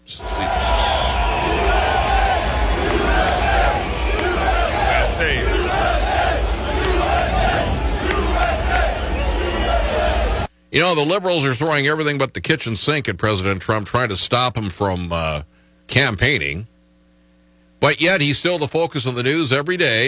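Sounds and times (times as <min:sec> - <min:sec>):
thunderous crowd applause and cheering at race: 0:00.0 - 0:10.5
speech: 0:10.7 - 0:16.7, 0:17.8 - 0:20.0.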